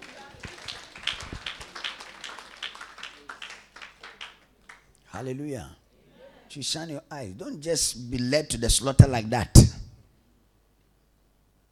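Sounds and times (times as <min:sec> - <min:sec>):
crowd clapping: 0:00.0 - 0:05.0
speech: 0:05.2 - 0:05.8, 0:06.5 - 0:09.8.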